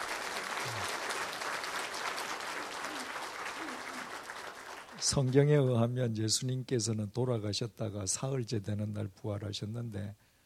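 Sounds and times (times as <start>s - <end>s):
audience applause: 0.0s - 5.5s
speech: 5.0s - 10.2s.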